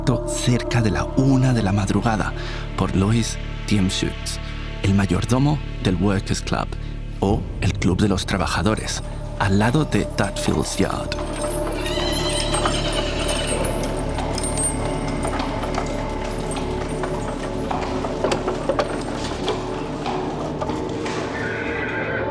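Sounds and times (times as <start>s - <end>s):
speech: 0.0s - 11.4s
pony hooves clip-clopping as its rider approaches Dudfield's Yard at night: 9.0s - 22.2s.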